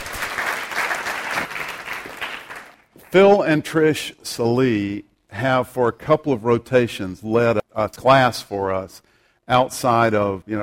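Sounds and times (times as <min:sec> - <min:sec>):
audience applause: 0:00.0 - 0:02.9
speech: 0:03.1 - 0:10.6.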